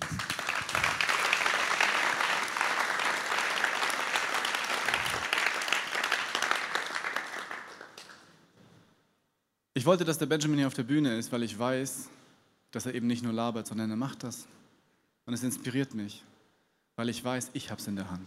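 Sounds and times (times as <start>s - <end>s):
crowd applauding: 0.0s - 8.3s
speech: 9.8s - 14.6s, 15.3s - 16.3s, 17.0s - 18.2s.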